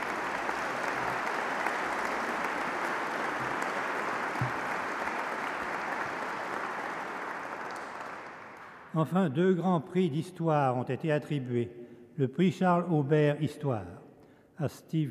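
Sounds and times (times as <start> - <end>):
audience applause for prize winners: 0.0 - 8.9
speech: 9.0 - 14.0, 14.6 - 15.0.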